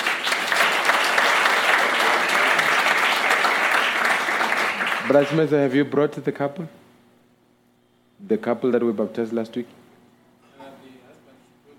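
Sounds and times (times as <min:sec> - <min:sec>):
audience round of applause: 0:00.0 - 0:05.5
speech: 0:05.1 - 0:06.8, 0:08.3 - 0:09.8.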